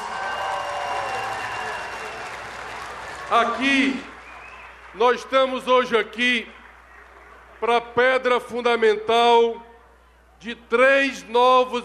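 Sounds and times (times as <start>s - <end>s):
crowd clapping for teachers at a foundation-stone ceremony in Goiás: 0.0s - 8.0s
speech: 3.3s - 4.1s, 5.0s - 6.6s, 7.6s - 9.7s, 10.4s - 11.8s.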